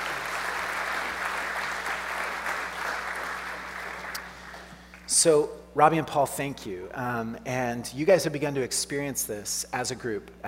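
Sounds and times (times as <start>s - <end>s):
audience applause welcoming two speakers onto a stage: 0.0s - 5.0s
speech: 5.2s - 10.4s.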